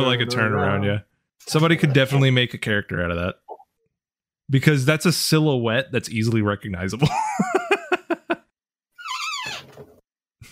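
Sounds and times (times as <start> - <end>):
speech: 0.0 - 3.4, 4.5 - 7.5
laughter: 7.0 - 8.4
chair squeaking: 9.0 - 10.0.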